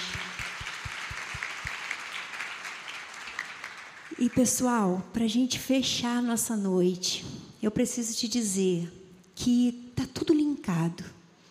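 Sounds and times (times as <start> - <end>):
audience applause: 0.0 - 4.2
speech: 4.2 - 11.2.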